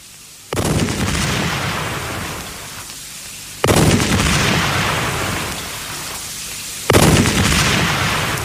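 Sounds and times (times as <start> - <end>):
cannon fire: 0.5 - 2.9, 3.6 - 8.4.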